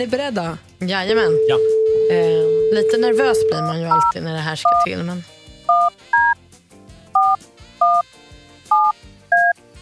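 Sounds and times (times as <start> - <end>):
speech: 0.0 - 5.4
touch-tone beeps from a phone being dialed: 1.3 - 4.1, 4.7 - 4.9, 5.7 - 6.4, 7.2 - 8.0, 8.7 - 9.5.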